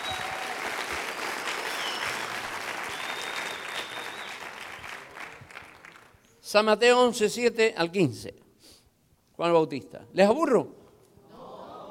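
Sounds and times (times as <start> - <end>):
audience applauding: 0.0 - 6.2
speech: 6.5 - 8.4, 9.4 - 10.8.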